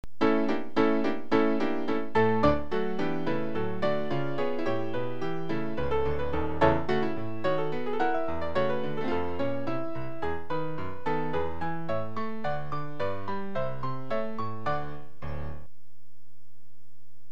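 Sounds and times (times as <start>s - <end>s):
piano: 0.0s - 15.7s.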